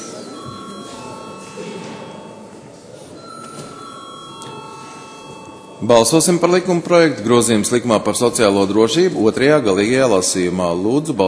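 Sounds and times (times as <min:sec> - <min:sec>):
parliament electric bell ringing before a vote: 0:00.0 - 0:06.8
low murmur of voices: 0:00.0 - 0:11.2
speech: 0:05.8 - 0:11.2.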